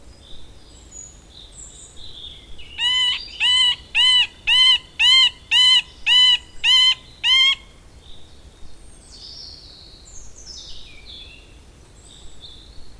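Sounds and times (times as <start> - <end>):
middle spotted woodpecker nasal mewing quacks: 2.8 - 7.7.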